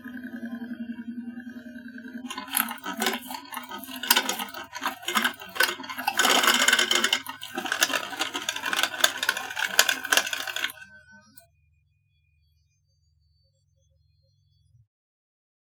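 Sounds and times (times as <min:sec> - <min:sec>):
poker card shuffler: 0:02.3 - 0:10.8.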